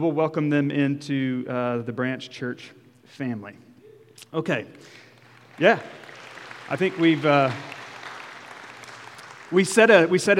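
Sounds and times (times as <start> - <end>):
speech: 0.0 - 5.0, 5.6 - 6.0, 6.7 - 7.8, 9.5 - 10.3
church congregation applause welcoming new members: 4.8 - 10.3.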